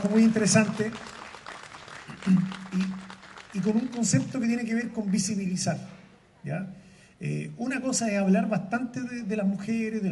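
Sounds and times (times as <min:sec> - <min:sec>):
speech: 0:00.0 - 0:01.2, 0:02.2 - 0:03.0, 0:03.6 - 0:10.1
audience applause: 0:00.0 - 0:05.4.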